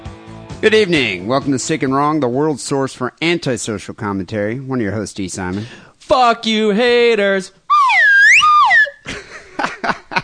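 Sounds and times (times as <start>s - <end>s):
speech: 0.6s - 7.6s
slide whistle: 7.7s - 9.1s
laughter: 9.0s - 10.2s.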